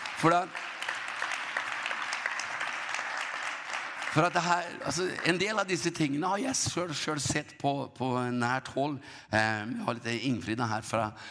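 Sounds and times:
audience applauding: 0.0s - 6.4s
speech: 0.2s - 0.6s, 4.2s - 11.2s.

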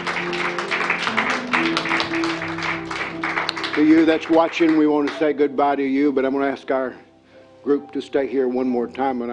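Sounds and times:
audience clapping: 0.0s - 5.3s
sustained musical tones: 0.0s - 8.5s
speech: 3.8s - 9.3s.

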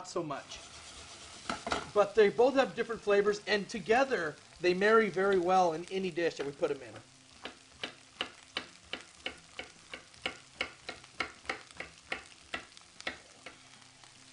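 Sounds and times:
speech: 0.0s - 0.7s, 2.0s - 7.1s
red and green peppers and onions frying in a pan: 0.0s - 14.3s.

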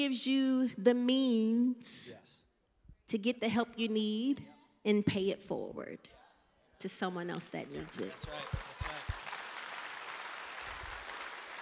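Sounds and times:
speech: 0.0s - 2.4s, 3.1s - 6.2s, 6.8s - 8.8s
audience clapping: 7.4s - 11.6s.

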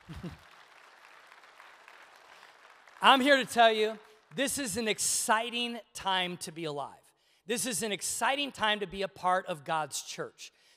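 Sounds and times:
audience applause: 0.0s - 4.3s
speech: 0.1s - 0.4s, 3.0s - 10.6s.

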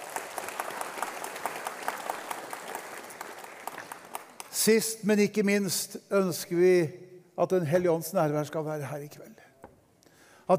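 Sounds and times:
audience applause: 0.0s - 4.5s
speech: 4.6s - 9.5s.

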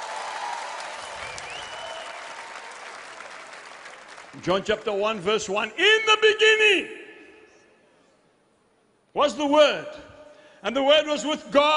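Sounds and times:
audience clapping: 0.0s - 5.1s
speech: 4.4s - 7.0s, 9.2s - 11.7s.

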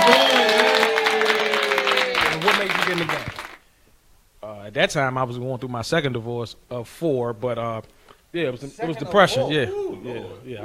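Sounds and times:
audience applause: 0.0s - 3.6s
speech: 4.7s - 10.6s.

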